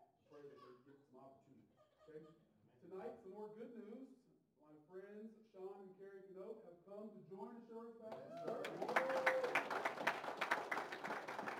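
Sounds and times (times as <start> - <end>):
speech: 0.4 - 9.9
congregation clapping in a Baptist church: 8.1 - 11.5.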